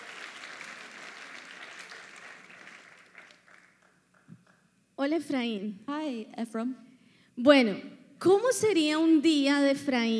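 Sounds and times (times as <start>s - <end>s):
crowd applause: 0.0s - 4.2s
speech: 5.0s - 10.1s.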